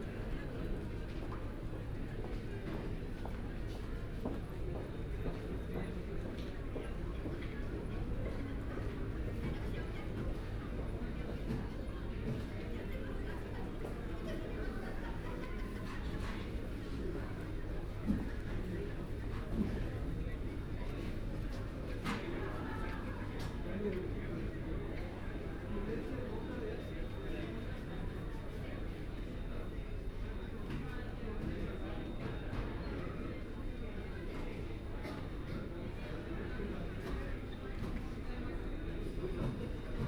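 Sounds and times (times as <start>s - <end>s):
airport ambience at Kathmandu Airport in Nepal: 0.0s - 40.0s.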